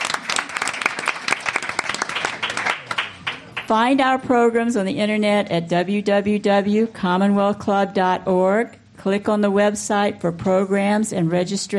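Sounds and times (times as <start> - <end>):
audience applause: 0.0 - 3.7
speech: 3.7 - 11.7.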